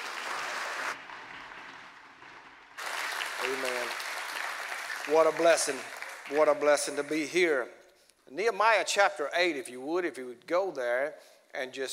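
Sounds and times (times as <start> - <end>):
audience at a Pacific Baptist church service applauding: 0.0 - 7.3
speech: 5.1 - 11.9.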